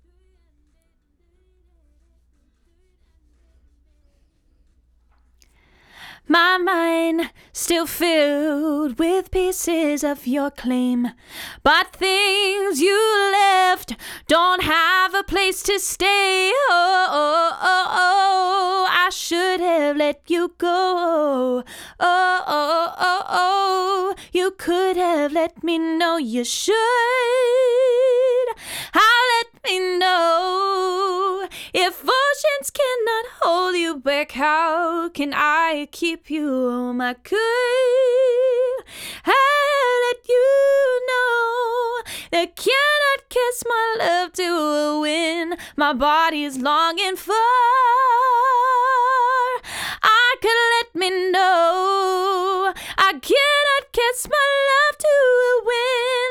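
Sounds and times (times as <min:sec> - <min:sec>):
vocals: 0:00.0 - 0:56.2.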